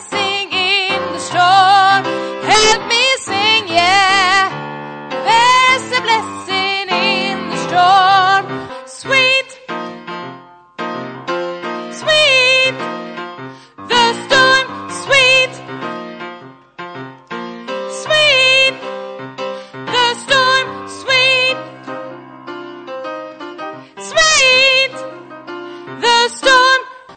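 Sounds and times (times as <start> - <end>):
soprano voice: 0.0 - 9.8, 11.9 - 12.9, 13.8 - 15.8, 17.8 - 18.9, 19.8 - 21.9, 24.0 - 25.2, 25.9 - 27.1.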